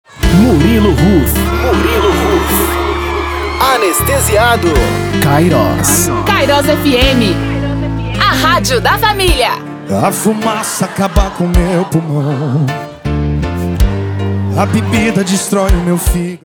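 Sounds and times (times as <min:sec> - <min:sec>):
laughter: 0:00.1 - 0:09.2, 0:09.8 - 0:12.9, 0:14.0 - 0:16.1
powerful intro music: 0:00.1 - 0:16.4.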